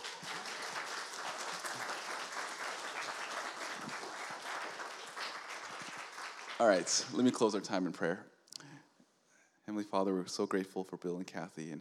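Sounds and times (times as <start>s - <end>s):
audience applauding: 0.0s - 7.6s
speech: 6.6s - 8.3s, 9.7s - 11.7s.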